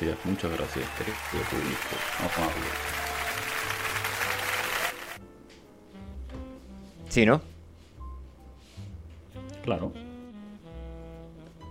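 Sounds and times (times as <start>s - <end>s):
speech: 0.0s - 3.0s, 7.1s - 7.5s, 9.6s - 10.0s
applause: 0.0s - 5.2s.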